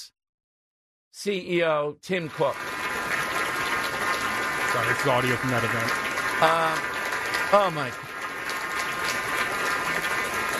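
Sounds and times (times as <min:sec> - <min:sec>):
speech: 0:01.2 - 0:02.7, 0:04.8 - 0:06.9, 0:07.5 - 0:08.1
applause at a banquet for President Xi in San Francisco: 0:02.1 - 0:10.5.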